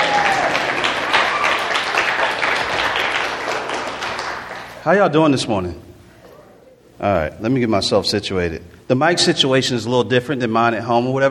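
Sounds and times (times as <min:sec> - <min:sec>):
audience clapping: 0:00.0 - 0:04.9
speech: 0:04.8 - 0:05.9, 0:07.0 - 0:11.2.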